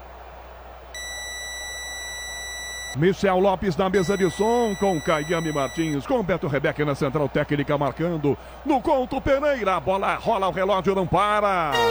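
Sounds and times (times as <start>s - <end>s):
radio time signal beep: 1.0s - 3.0s, 4.0s - 6.0s
speech: 2.9s - 11.8s.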